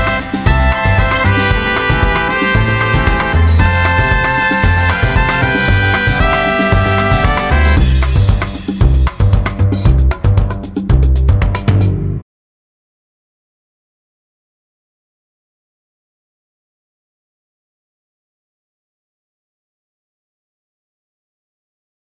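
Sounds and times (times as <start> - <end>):
latin big band music mix: 0.0 - 11.8.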